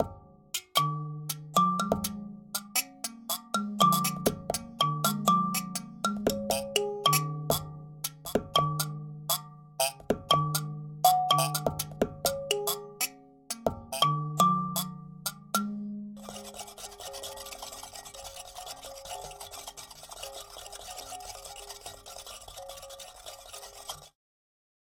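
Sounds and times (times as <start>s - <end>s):
kalimba: 0.0s - 23.1s.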